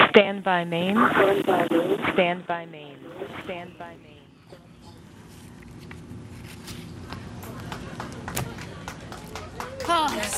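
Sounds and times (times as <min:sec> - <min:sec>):
speech: 0:00.1 - 0:04.1, 0:09.9 - 0:10.3
employees clapping and cheering: 0:07.1 - 0:10.3.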